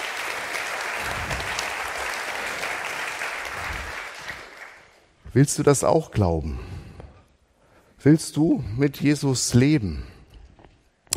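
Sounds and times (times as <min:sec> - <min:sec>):
audience applause: 0:00.0 - 0:05.0
speech: 0:05.3 - 0:06.7, 0:08.0 - 0:10.1.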